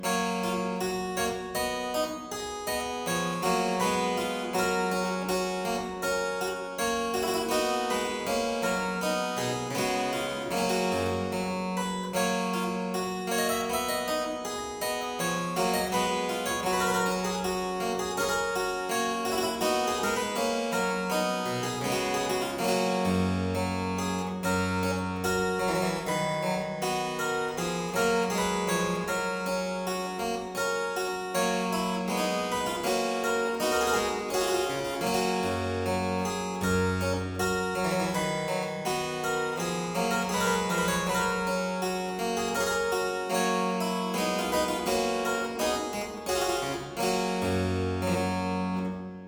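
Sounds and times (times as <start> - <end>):
harpsichord aria in G major: 0.0 - 49.2.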